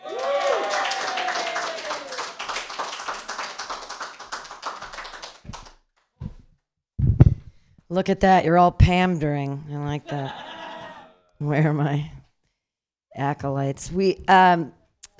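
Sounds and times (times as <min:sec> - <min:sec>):
crowd audience applause: 0:00.0 - 0:05.7
speech: 0:07.9 - 0:10.5, 0:11.4 - 0:12.2, 0:13.2 - 0:14.8
laughter: 0:10.0 - 0:11.2.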